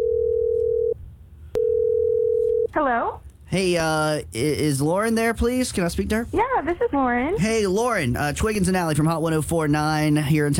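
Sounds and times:
telephone dial tone as a call is placed: 0.0s - 1.0s, 1.6s - 2.7s
speech: 2.8s - 10.5s.

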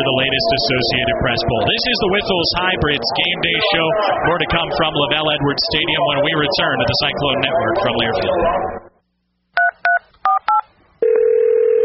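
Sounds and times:
speech: 0.0s - 8.8s
steady telephone tone: 10.3s - 11.8s.

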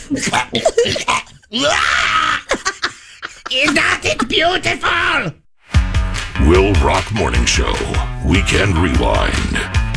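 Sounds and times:
man imitating a cat coughing up a hairball: 0.1s - 1.5s
speech: 0.1s - 2.5s, 3.5s - 5.4s, 6.4s - 9.8s.

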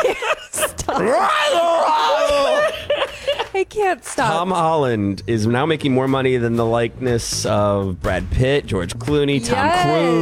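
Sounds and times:
laughter: 0.0s - 3.6s
speech: 1.0s - 1.6s, 3.7s - 10.2s
woman screaming into the microphone: 1.0s - 2.7s.

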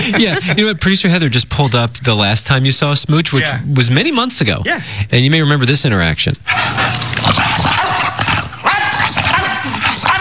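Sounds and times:
laughter: 0.0s - 0.8s
speech: 0.0s - 7.7s
raspy dog barking: 6.5s - 10.1s.

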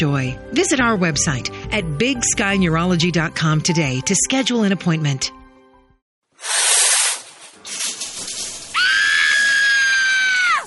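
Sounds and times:
speech: 0.0s - 5.4s
cold shower spraying: 6.4s - 9.8s
person screaming: 8.8s - 10.6s.

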